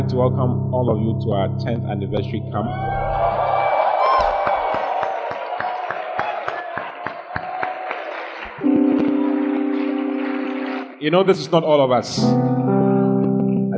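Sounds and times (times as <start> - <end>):
speech: 0.0 - 3.1, 11.0 - 12.7
church congregation shouting praise to the Lord at a 10th anniversary camp: 2.7 - 8.5
congregation clapping: 3.1 - 11.1.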